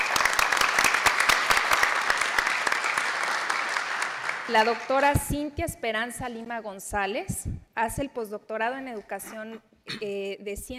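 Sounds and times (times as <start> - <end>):
audience applause: 0.0 - 5.0
speech: 4.5 - 10.7.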